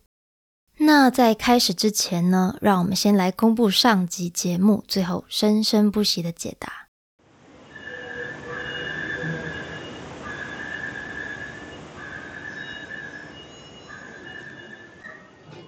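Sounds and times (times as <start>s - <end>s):
speech: 1.0s - 6.8s
constant rumbling rail noise: 7.3s - 15.6s
Taipei metro door-closing warning chime: 7.6s - 15.6s.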